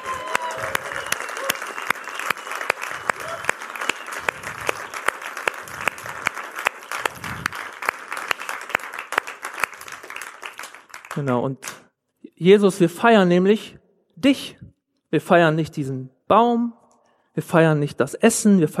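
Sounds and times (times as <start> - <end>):
audience applause: 0.0 - 11.2
speech: 11.2 - 11.7, 12.4 - 16.8, 17.4 - 18.7.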